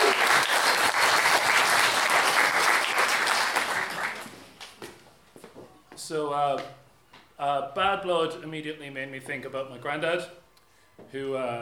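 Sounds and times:
audience applause: 0:00.0 - 0:04.7
speech: 0:06.1 - 0:06.8, 0:07.4 - 0:10.4, 0:11.1 - 0:11.5.

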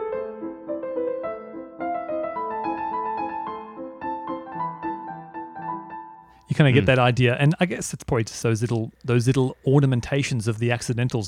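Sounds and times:
solo piano piece: 0:00.0 - 0:06.3
speech: 0:06.5 - 0:11.2.

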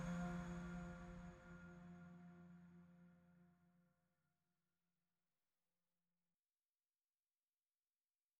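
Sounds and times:
dystopian music: 0:00.0 - 0:03.3.

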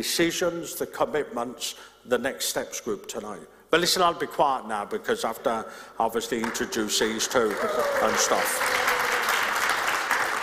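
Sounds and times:
speech: 0:00.0 - 0:09.1
audience clapping: 0:06.4 - 0:10.4.

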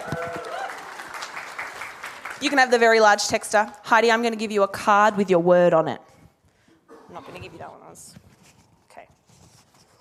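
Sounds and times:
audience clapping: 0:00.0 - 0:03.2
speech: 0:02.4 - 0:06.1, 0:07.1 - 0:08.2.

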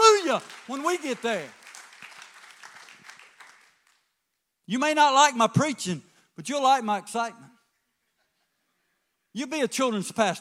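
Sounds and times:
crowd clapping: 0:00.0 - 0:04.2
speech: 0:00.4 - 0:01.6, 0:04.7 - 0:07.5, 0:09.3 - 0:10.3.

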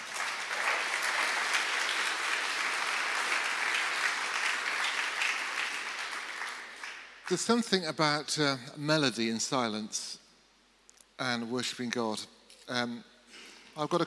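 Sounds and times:
audience applause: 0:00.0 - 0:07.4
speech: 0:07.3 - 0:10.2, 0:11.2 - 0:13.1, 0:13.8 - 0:14.0.

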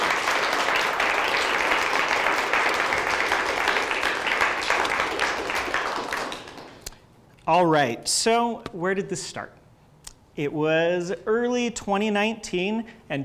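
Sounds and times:
audience applause: 0:00.0 - 0:06.8
speech: 0:07.5 - 0:09.6, 0:10.4 - 0:13.2.

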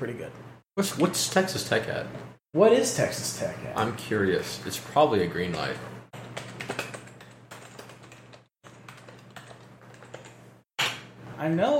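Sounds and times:
speech: 0:00.0 - 0:06.5, 0:11.4 - 0:11.7
typing on a computer keyboard: 0:05.5 - 0:10.4.

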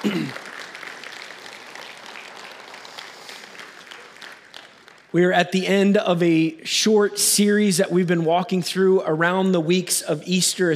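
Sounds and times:
audience round of applause: 0:00.0 - 0:05.2
speech: 0:05.1 - 0:10.7.

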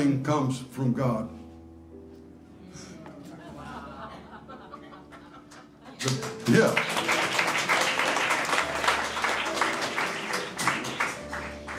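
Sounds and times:
speech: 0:00.0 - 0:01.4, 0:06.0 - 0:07.1
laughter: 0:02.9 - 0:11.0
audience applause: 0:05.1 - 0:11.7.

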